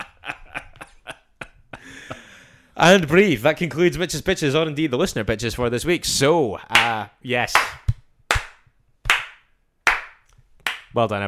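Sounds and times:
laughter: 0:00.0 - 0:02.5
speech: 0:02.8 - 0:07.8, 0:11.0 - 0:11.2
slow hand claps: 0:06.7 - 0:11.0.

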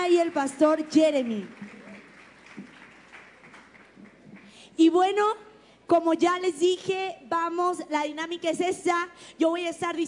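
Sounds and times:
audience applause: 0:00.0 - 0:04.6
speech: 0:00.1 - 0:01.7, 0:04.8 - 0:10.0.

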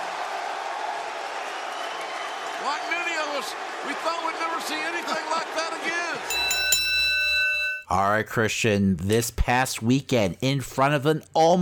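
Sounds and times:
wrestling crowd cheering: 0:00.0 - 0:07.7
speech: 0:02.6 - 0:06.6, 0:07.9 - 0:11.6.

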